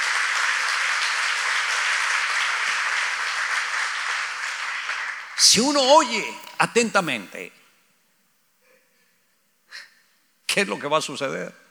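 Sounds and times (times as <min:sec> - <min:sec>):
audience applause: 0:00.0 - 0:07.4
speech: 0:05.4 - 0:07.6, 0:10.6 - 0:11.6.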